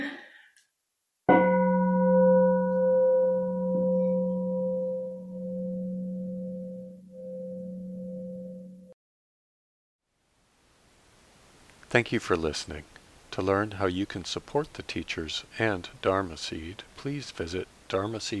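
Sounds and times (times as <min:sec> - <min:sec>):
meditation bell ringing: 0:01.3 - 0:08.9
speech: 0:12.0 - 0:18.3.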